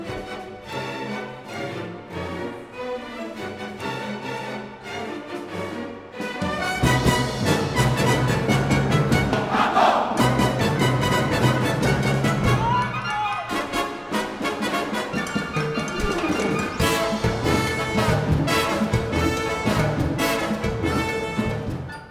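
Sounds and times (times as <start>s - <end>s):
loud driving orchestral Latin dance music: 0.0s - 22.1s
orchestra musicians yelling the word Mambo together: 9.4s - 10.3s, 12.4s - 13.6s.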